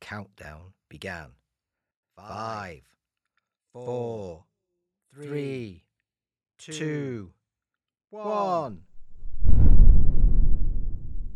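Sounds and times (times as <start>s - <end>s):
speech: 0.1s - 1.4s, 2.2s - 3.0s, 3.7s - 4.5s, 5.1s - 5.9s, 6.6s - 7.4s, 8.1s - 8.9s
fictional space sling launching with a deep rumbling whoosh: 9.0s - 11.3s.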